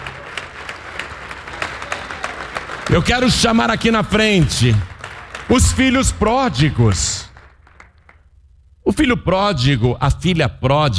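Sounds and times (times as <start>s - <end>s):
church congregation clapping in praise: 0.0s - 8.3s
speech: 2.9s - 4.9s, 5.5s - 7.3s, 8.9s - 10.9s.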